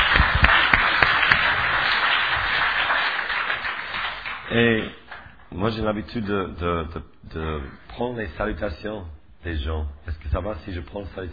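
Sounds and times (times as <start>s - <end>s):
audience applauding: 0.0s - 5.4s
speech: 4.6s - 11.3s.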